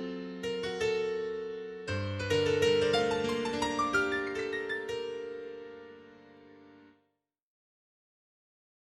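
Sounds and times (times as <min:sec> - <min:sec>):
solo piano: 0:00.0 - 0:07.0.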